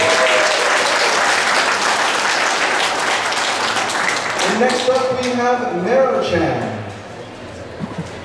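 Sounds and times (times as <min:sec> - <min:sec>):
audience applause: 0:00.0 - 0:05.1
speech: 0:04.6 - 0:06.8.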